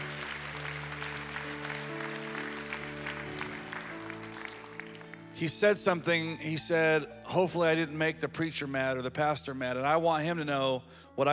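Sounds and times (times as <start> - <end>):
audience applause: 0.0 - 6.0
speech: 5.4 - 11.3.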